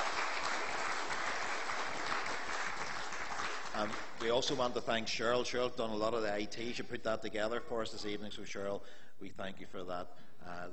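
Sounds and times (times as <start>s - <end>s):
audience applause: 0.0s - 4.7s
speech: 3.8s - 10.7s.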